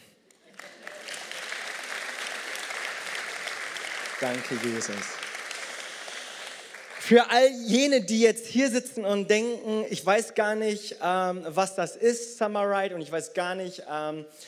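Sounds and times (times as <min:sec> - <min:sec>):
large crowd applauding in a church: 0:00.3 - 0:07.6
speech: 0:04.2 - 0:05.2, 0:07.1 - 0:14.4.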